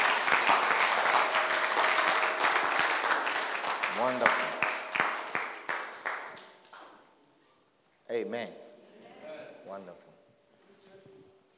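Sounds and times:
audience clapping: 0.0s - 7.1s
speech: 4.0s - 4.6s, 8.3s - 8.6s.

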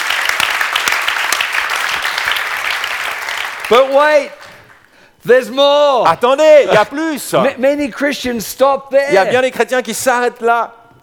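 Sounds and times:
audience applauding: 0.0s - 4.9s
speech: 3.7s - 4.4s, 5.2s - 10.8s.

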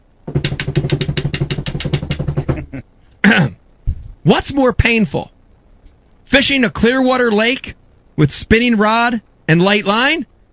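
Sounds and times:
voice imitating a drum roll: 0.3s - 3.6s
speech: 4.3s - 5.3s, 6.3s - 10.3s.

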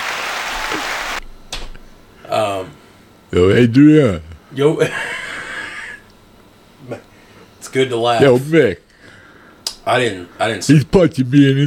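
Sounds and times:
applause: 0.0s - 1.2s
faint burst of noise: 0.0s - 1.3s
speech: 3.3s - 5.1s, 6.9s - 7.1s, 7.7s - 8.8s, 9.8s - 11.6s.

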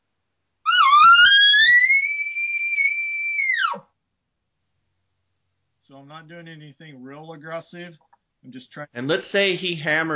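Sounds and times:
imitated elk bugle call: 0.7s - 3.9s
speech: 6.0s - 10.1s.

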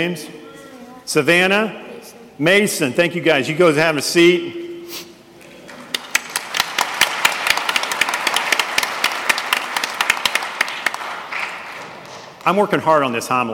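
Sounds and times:
speech: 0.0s - 0.4s, 1.1s - 1.8s, 2.4s - 5.1s, 12.5s - 13.5s
audience applause: 5.5s - 12.5s.

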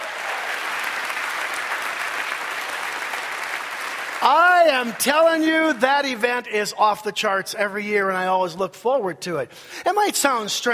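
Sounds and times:
audience clapping: 0.0s - 6.5s
speech: 4.2s - 10.7s.

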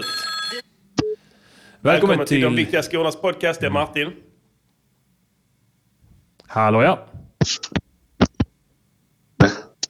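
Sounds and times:
telephone ringing: 0.0s - 0.7s
speech: 1.8s - 4.3s, 6.5s - 7.8s.

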